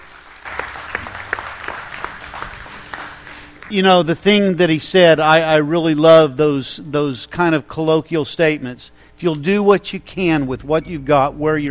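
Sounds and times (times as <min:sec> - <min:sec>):
audience hand clapping: 0:00.0 - 0:04.4
speech: 0:03.7 - 0:11.6.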